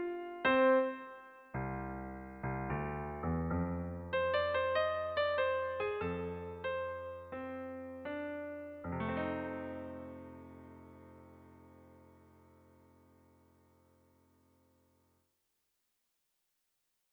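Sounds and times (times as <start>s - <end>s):
blues on pianoforte: 0.0s - 13.4s.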